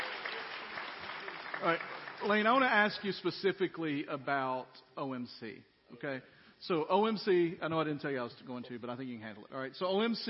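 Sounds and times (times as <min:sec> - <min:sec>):
group applauding: 0:00.0 - 0:03.0
speech: 0:01.6 - 0:10.2.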